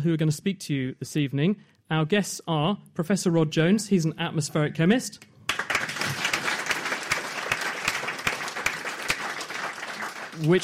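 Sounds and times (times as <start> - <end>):
speech: 0.0 - 5.3, 10.4 - 10.6
audience applause welcoming guests at an evening panel: 5.5 - 10.6.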